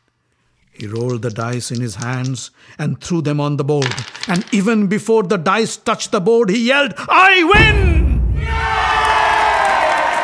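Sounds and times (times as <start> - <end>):
speech: 0.8 - 8.9
jubilant crowd bursting into wild cries: 8.4 - 10.2.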